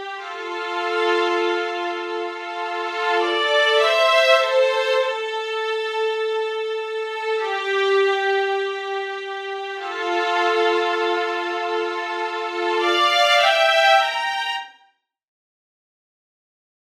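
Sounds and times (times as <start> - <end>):
violin strings: 0.0 - 14.8.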